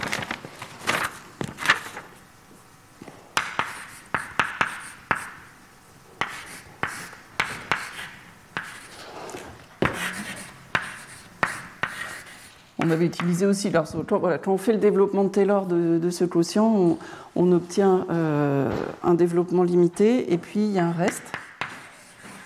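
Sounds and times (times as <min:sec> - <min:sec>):
handwriting of a mathematical expansion: 0:03.4 - 0:05.5, 0:06.2 - 0:13.0, 0:21.1 - 0:22.4
speech: 0:12.9 - 0:21.4.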